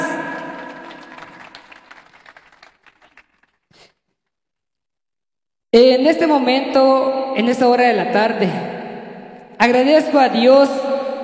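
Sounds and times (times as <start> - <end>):
loud audience applause: 0.0 - 3.8
speech: 5.7 - 8.7, 9.6 - 10.8.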